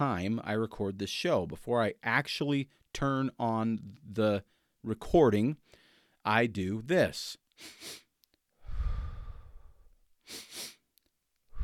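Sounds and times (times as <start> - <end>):
speech: 0.0 - 8.0
long soft exhalation of the physiological sigh: 7.6 - 10.8
quick sharp inhalations of the physiological sigh: 7.6 - 10.9.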